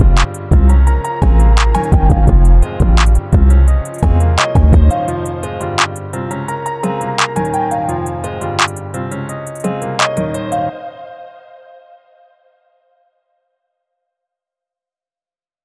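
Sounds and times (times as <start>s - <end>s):
instrumental type beat: 0.0s - 10.4s.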